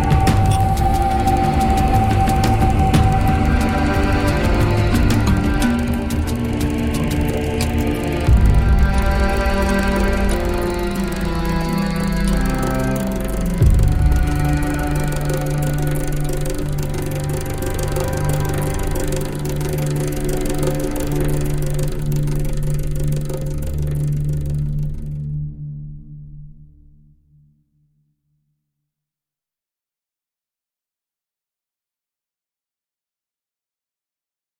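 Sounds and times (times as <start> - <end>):
instrumental music: 0.0 - 25.4.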